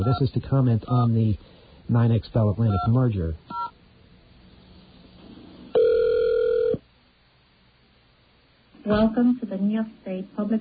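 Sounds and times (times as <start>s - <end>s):
speech: 0.0s - 3.6s, 9.2s - 10.5s
telephone call ringing: 5.8s - 6.8s.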